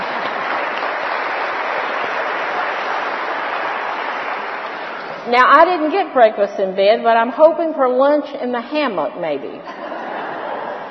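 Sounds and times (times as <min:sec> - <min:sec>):
crowd applause: 0:00.0 - 0:05.3, 0:09.9 - 0:10.9
speech: 0:05.3 - 0:09.9
laughter: 0:09.6 - 0:10.9.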